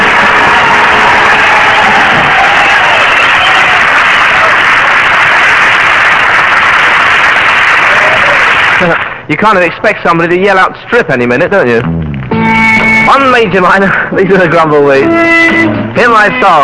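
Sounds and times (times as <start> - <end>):
studio audience applause: 0.0 - 9.3
speech: 8.8 - 12.0, 13.1 - 16.6.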